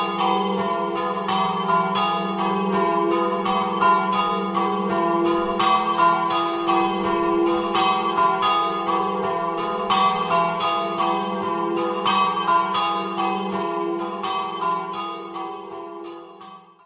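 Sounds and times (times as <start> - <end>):
bells ringing: 0.0 - 16.6.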